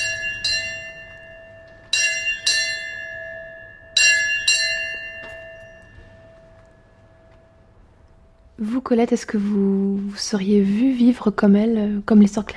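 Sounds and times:
house bell ringing to call someone: 0.0 - 8.6
speech: 8.6 - 12.5.

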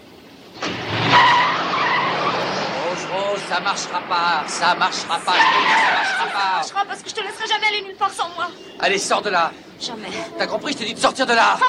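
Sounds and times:
car starting and driving off: 0.0 - 8.8
brief high car tire squeal: 0.6 - 7.0
speech: 3.5 - 11.6.

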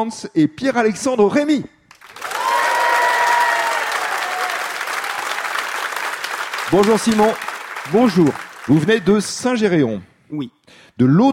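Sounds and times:
speech: 0.0 - 1.8, 6.7 - 11.3
audience applause: 2.0 - 9.3.

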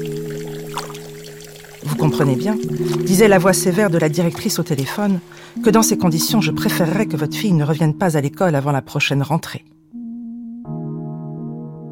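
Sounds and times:
coarse salt pouring into water: 0.0 - 5.6
speech: 1.8 - 9.8.

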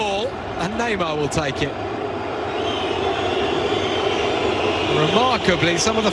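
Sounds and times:
stadium crowd roaring: 0.0 - 6.1
speech: 0.6 - 1.9, 4.9 - 6.1
crowd whistling: 2.5 - 5.4.

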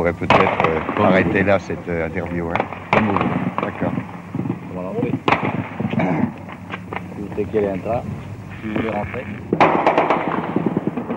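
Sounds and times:
speech: 0.0 - 4.1, 5.0 - 6.2, 7.4 - 9.9
gunfire: 0.2 - 1.6, 2.2 - 6.6, 9.5 - 11.1.

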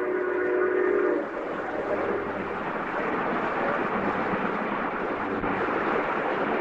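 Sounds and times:
steam locomotive whistle: 0.0 - 2.4
steam locomotive chuffing through countryside: 0.0 - 6.5.

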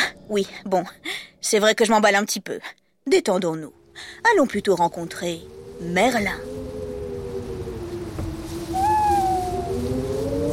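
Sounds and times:
low steady tonal background: 0.0 - 10.5
speech: 0.3 - 6.6
owl from a Northumberland forest hooting: 8.4 - 10.5.

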